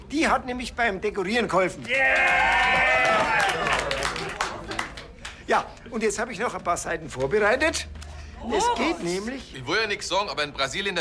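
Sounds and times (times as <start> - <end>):
speech: 0.1 - 4.0, 5.5 - 10.9
party guests clapping: 1.5 - 6.2
excited voices and cheers: 1.9 - 4.3.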